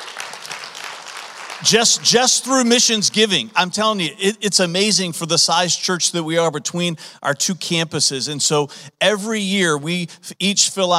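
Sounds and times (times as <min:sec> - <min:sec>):
audience applause: 0:00.0 - 0:02.4
speech: 0:01.6 - 0:10.9.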